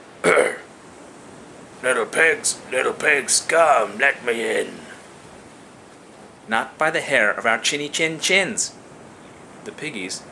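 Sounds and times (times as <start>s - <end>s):
throat clearing: 0.2s - 0.7s
speech: 1.8s - 4.9s, 6.5s - 8.8s, 9.7s - 10.3s.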